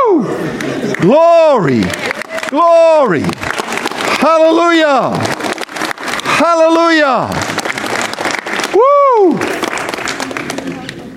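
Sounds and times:
audience applause: 0.4 - 11.1
speech: 1.0 - 3.4, 4.2 - 5.4, 6.4 - 7.5
whooping cheer: 1.1 - 3.3, 8.6 - 9.5.

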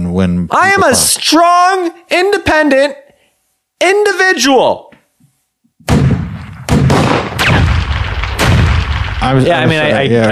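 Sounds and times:
speech: 0.2 - 3.0, 3.8 - 4.9, 9.2 - 10.3
heavy continuous gunfire: 5.9 - 9.6.

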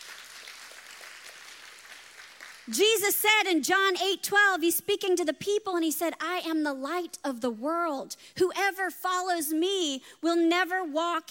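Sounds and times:
audience clapping: 0.0 - 2.7
speech: 2.7 - 11.3.

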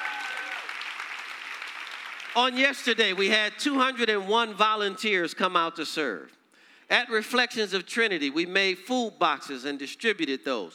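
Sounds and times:
audience applause: 0.0 - 2.4
speech: 2.4 - 10.7.

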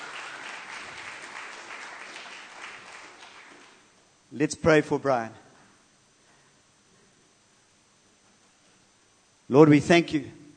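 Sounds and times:
church meeting gathering clapping to welcome visiting guests: 0.0 - 4.0
speech: 4.3 - 5.4, 9.5 - 10.4.

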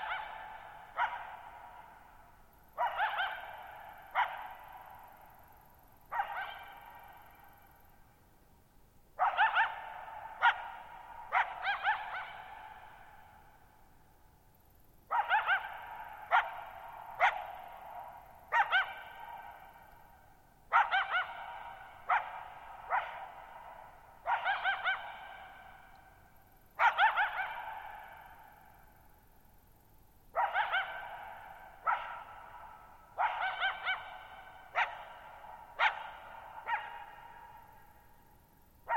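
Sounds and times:
coyote barking and yipping: 0.0 - 5.1, 6.1 - 7.7, 9.2 - 13.5, 15.1 - 20.0, 20.7 - 26.0, 26.7 - 28.8, 30.3 - 38.0.

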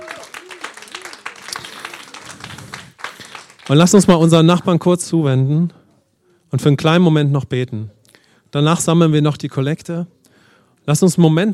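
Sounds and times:
voices calling out: 0.0 - 2.5
audience applause: 0.0 - 4.2
speech: 3.7 - 5.8, 6.5 - 10.2, 10.8 - 11.5.

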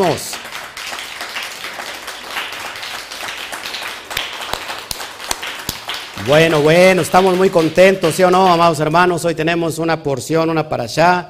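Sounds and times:
speech: 0.0 - 0.4, 6.2 - 11.2
audience applause: 0.0 - 8.6.

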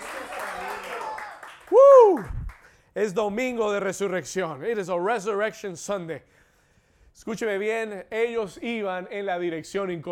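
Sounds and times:
crowd clapping and cheering: 0.0 - 2.8
speech: 3.0 - 6.4, 7.2 - 10.1.

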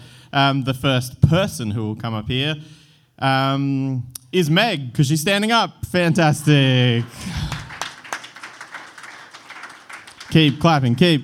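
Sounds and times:
speech: 0.3 - 7.5, 10.3 - 11.2
audience clapping: 6.2 - 11.2.

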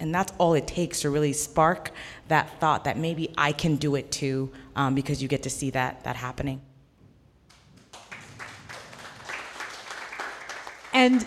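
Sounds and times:
speech: 0.0 - 6.7, 11.0 - 11.2
audience applause: 7.8 - 11.2.

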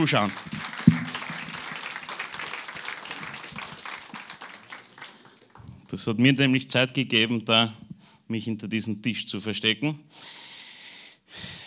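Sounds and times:
speech: 0.0 - 0.6, 5.9 - 10.4
audience applause: 0.0 - 5.9.

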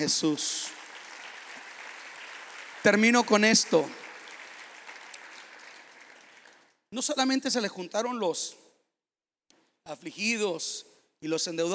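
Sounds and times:
speech: 0.0 - 0.8, 2.8 - 4.0, 6.9 - 8.7, 9.8 - 11.7
audience applause: 0.0 - 6.7.

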